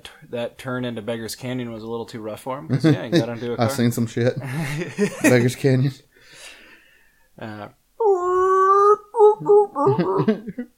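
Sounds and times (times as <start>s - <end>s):
speech: 0.3s - 6.1s, 7.4s - 7.8s, 9.4s - 10.7s
laughter: 4.4s - 5.6s, 9.4s - 10.7s
person imitating a Sand People war cry: 8.0s - 10.5s.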